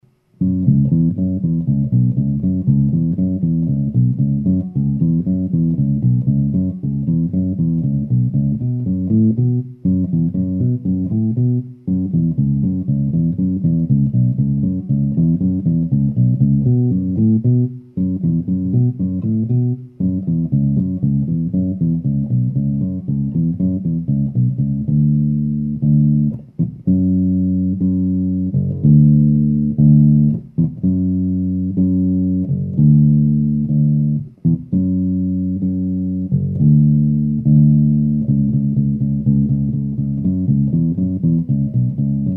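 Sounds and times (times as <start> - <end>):
bass: 0.0 - 42.3.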